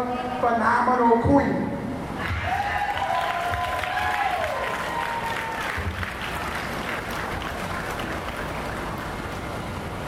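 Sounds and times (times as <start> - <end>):
speech: 0.0 - 1.8
sustained high whoop: 2.2 - 6.1
audience applause: 2.2 - 9.9.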